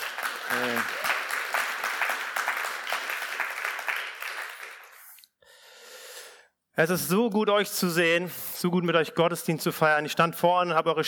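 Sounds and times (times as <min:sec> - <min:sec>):
audience applause: 0:00.0 - 0:05.1
speech: 0:00.5 - 0:01.1, 0:06.8 - 0:11.0.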